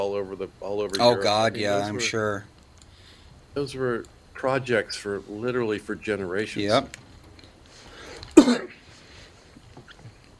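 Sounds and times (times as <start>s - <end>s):
speech: 0.0s - 2.5s, 3.6s - 7.0s, 8.4s - 8.8s
person coughing: 8.4s - 8.8s.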